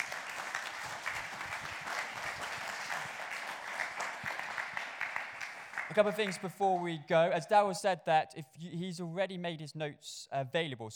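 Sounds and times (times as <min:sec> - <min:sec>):
audience applause: 0:00.0 - 0:06.8
speech: 0:05.9 - 0:10.9.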